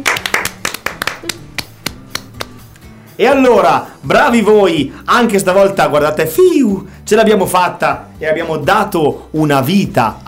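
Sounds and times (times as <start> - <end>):
applause, hand clapping: 0.0 - 2.6
speech: 3.2 - 10.2.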